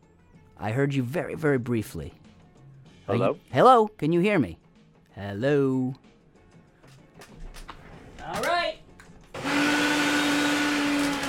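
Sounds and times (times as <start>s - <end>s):
speech: 0.6s - 2.2s, 3.1s - 4.6s, 5.2s - 6.1s
blender running: 9.3s - 11.2s.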